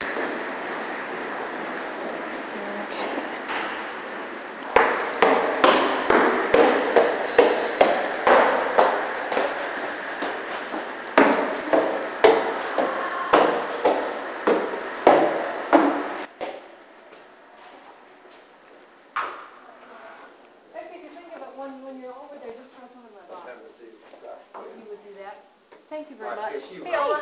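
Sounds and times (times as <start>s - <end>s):
footsteps: 0.0s - 20.0s.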